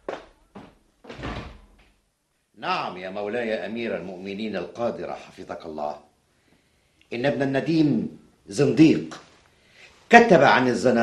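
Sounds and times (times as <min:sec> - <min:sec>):
heavy wooden door thuds in a historical Arabic radio drama: 0:01.0 - 0:01.8
speech: 0:02.6 - 0:06.1, 0:07.1 - 0:09.2, 0:10.1 - 0:11.0.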